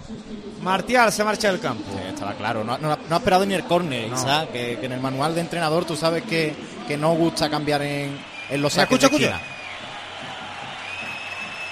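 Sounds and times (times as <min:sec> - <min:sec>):
speech: 0:00.1 - 0:09.5
some applause: 0:07.7 - 0:11.7
stadium crowd whistles: 0:07.7 - 0:11.7.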